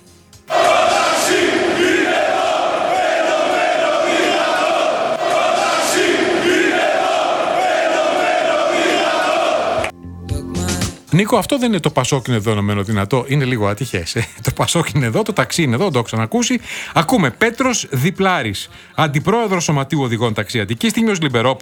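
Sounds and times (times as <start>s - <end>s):
protesters chanting slogans at a demonstration: 0.5s - 9.9s
speech: 11.2s - 21.5s.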